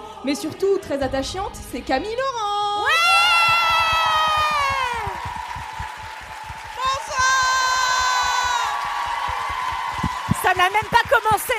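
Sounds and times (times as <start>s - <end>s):
speech: 0.2s - 2.6s, 10.6s - 11.5s
audience clapping: 3.4s - 11.5s.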